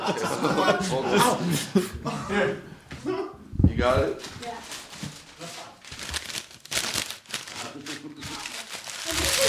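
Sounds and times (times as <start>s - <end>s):
laughter: 0.0s - 3.4s
speech: 0.1s - 2.7s
paper rustling and crinkling as it is folded for origami: 4.0s - 9.4s.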